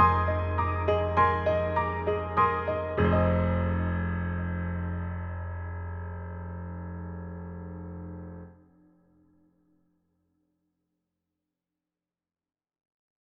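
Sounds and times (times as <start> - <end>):
dreamy German grand piano: 0.0 - 8.6.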